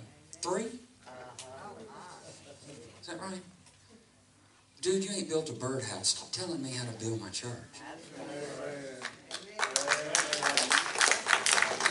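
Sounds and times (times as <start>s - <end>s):
speech: 0.4s - 0.8s, 3.1s - 3.6s, 4.8s - 9.2s
audience clapping: 9.0s - 11.9s.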